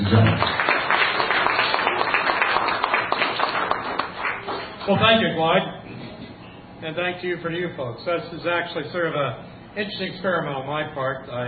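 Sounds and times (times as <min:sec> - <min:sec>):
audience applause: 0:00.0 - 0:04.9
speech: 0:00.1 - 0:00.6, 0:04.9 - 0:05.8, 0:06.8 - 0:11.4.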